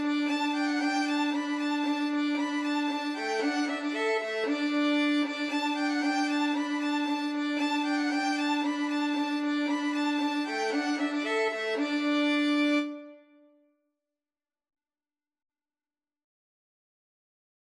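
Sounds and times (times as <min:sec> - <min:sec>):
violin trio playing: 0:00.0 - 0:13.2.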